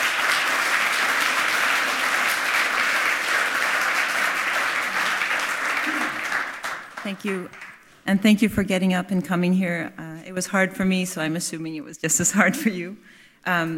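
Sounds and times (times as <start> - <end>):
audience applause: 0.0 - 7.8
speech: 7.1 - 13.7.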